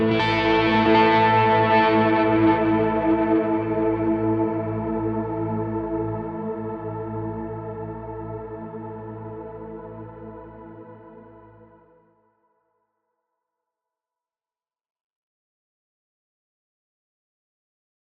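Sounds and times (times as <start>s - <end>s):
motion synth pads: 0.0s - 11.7s.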